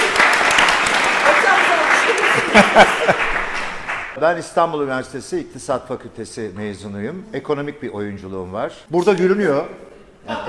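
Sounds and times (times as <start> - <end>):
audience applause: 0.0 - 4.2
laughter: 1.4 - 3.9
speech: 2.8 - 3.4, 4.2 - 10.4.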